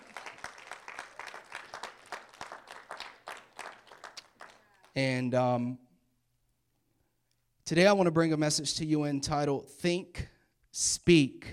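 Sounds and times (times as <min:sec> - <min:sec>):
audience clapping: 0:00.0 - 0:05.0
speech: 0:05.0 - 0:05.8, 0:07.7 - 0:11.5.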